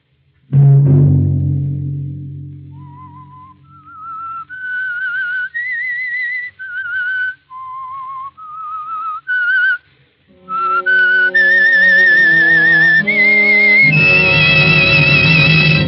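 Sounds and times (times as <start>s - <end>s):
instrumental music: 0.5s - 4.4s, 10.3s - 15.8s
low thud: 0.5s - 4.5s
eerie whistled signature melody of a radio show: 2.8s - 9.8s, 10.4s - 15.8s.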